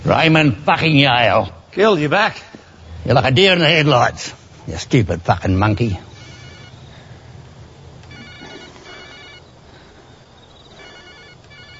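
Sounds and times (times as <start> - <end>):
steady hum of noise: 0.0 - 11.7
speech: 0.1 - 6.1
telephone ringing: 6.2 - 6.8, 8.0 - 9.5, 10.7 - 11.7.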